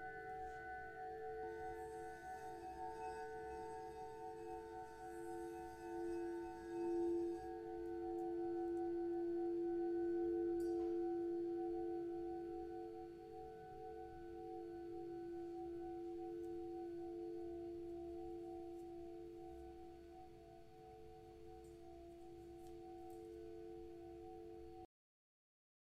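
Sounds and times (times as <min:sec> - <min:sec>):
singing bowls ringing in a sound bath: 0:00.0 - 0:24.9.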